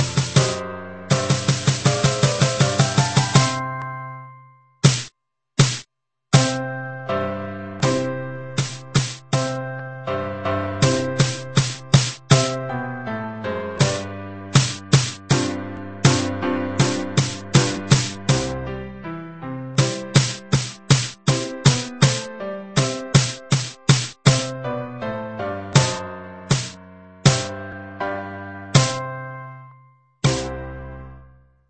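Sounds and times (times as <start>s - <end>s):
drum played with sticks: 0.0s - 0.6s, 1.2s - 3.6s, 4.8s - 5.8s, 6.4s - 6.6s, 8.6s - 9.5s, 10.8s - 12.6s, 13.8s - 14.0s, 14.6s - 18.5s, 19.8s - 24.5s, 25.8s - 27.5s, 28.8s - 29.0s, 30.2s - 30.5s
piano: 0.0s - 4.8s, 6.3s - 31.6s.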